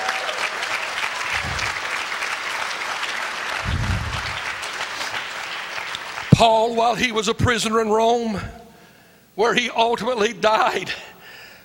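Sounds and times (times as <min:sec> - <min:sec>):
audience applause: 0:00.0 - 0:06.4
speech: 0:06.4 - 0:08.6, 0:09.4 - 0:11.0.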